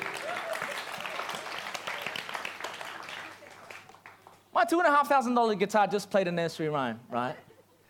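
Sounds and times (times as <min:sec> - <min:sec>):
children applauding: 0:00.0 - 0:04.4
speech: 0:04.6 - 0:07.5.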